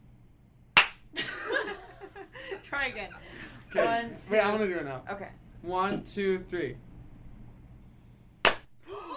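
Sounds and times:
two people clapping hands in unison: 0.8 - 1.1, 8.4 - 8.7
speech: 2.8 - 6.9.

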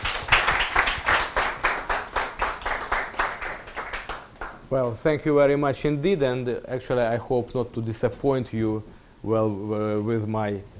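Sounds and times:
audience applause welcoming a lecturer at a talk: 0.0 - 4.6
speech: 4.7 - 10.7.

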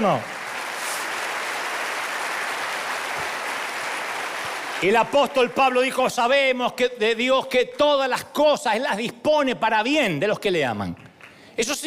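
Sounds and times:
speech: 0.0 - 0.4, 4.8 - 11.8
audience applause: 0.0 - 6.0.

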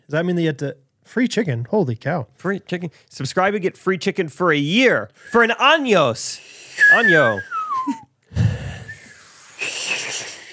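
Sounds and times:
speech: 0.1 - 8.0
people whistling: 6.8 - 8.0.

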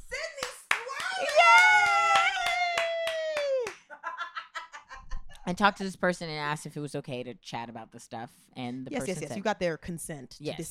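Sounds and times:
hand clapping: 0.4 - 3.9
speech: 5.5 - 10.7.

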